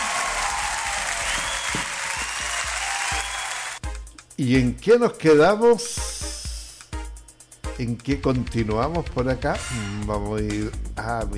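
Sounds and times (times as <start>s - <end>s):
applause: 0.0s - 3.8s
speech: 4.4s - 6.2s, 7.8s - 11.3s.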